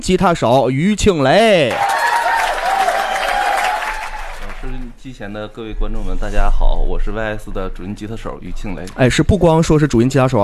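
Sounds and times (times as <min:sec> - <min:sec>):
speech: 0:00.0 - 0:01.9, 0:05.1 - 0:10.4
audience applause welcoming a band: 0:01.7 - 0:04.8.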